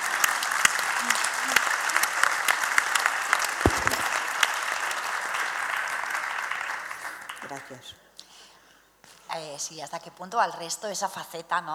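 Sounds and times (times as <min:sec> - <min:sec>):
audience applause: 0:00.0 - 0:07.8
speech: 0:07.5 - 0:08.1, 0:09.3 - 0:11.7.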